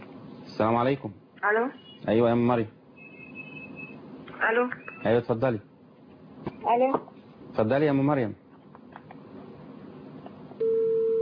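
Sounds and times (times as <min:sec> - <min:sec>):
low noise: 0:00.0 - 0:11.2
speech: 0:00.6 - 0:02.8, 0:04.4 - 0:05.7, 0:06.6 - 0:08.4
telephone tone after a dropped call: 0:10.6 - 0:11.2.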